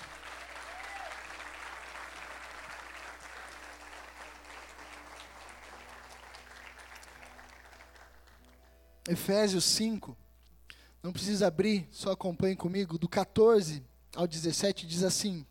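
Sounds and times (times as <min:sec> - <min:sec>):
audience applause: 0:00.0 - 0:08.6
speech: 0:09.1 - 0:10.2, 0:11.0 - 0:15.4.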